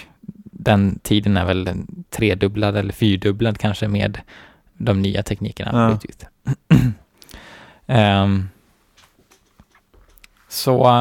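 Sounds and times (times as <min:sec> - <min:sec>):
speech: 0:00.7 - 0:07.0, 0:07.9 - 0:08.6, 0:10.5 - 0:11.0
humming throat clearing: 0:06.5 - 0:07.1
person coughing: 0:06.5 - 0:07.1.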